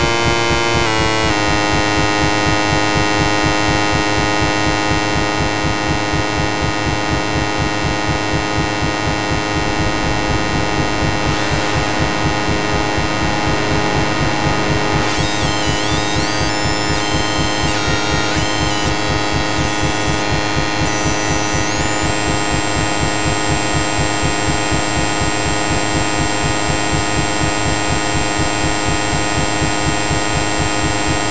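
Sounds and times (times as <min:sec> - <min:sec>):
noise: 0:00.0 - 0:31.2.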